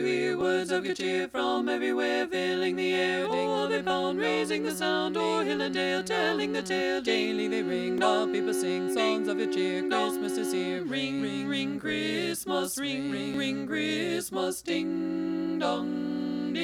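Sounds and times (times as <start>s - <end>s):
choir singing a carol without the tenor part: 0.0s - 16.6s.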